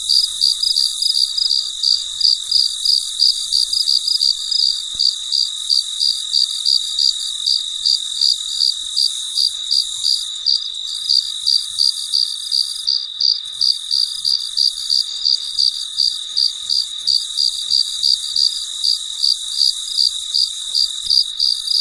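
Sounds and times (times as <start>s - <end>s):
cricket chirping: 0.0s - 21.7s
shrill insect chorus: 0.0s - 21.7s.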